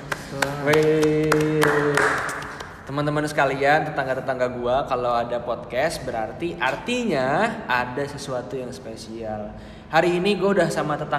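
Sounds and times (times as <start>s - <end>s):
hand clapping: 0.0s - 3.2s
speech: 0.3s - 2.0s, 2.9s - 11.1s.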